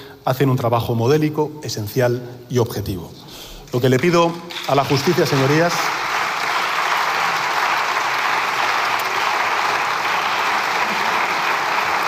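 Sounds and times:
speech: 0.2 - 6.0
applause from the Socialist benches in a parliamentary chamber: 4.5 - 12.0.

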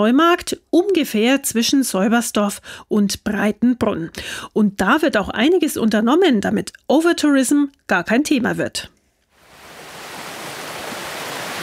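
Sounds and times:
speech: 0.0 - 9.0
Wissinger Laber brook rushing through the Heutal: 9.5 - 11.6.

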